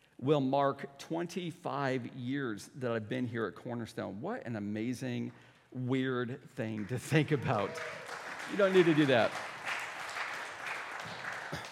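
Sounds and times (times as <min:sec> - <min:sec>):
speech: 0:00.2 - 0:09.5
audience clapping: 0:06.8 - 0:11.7.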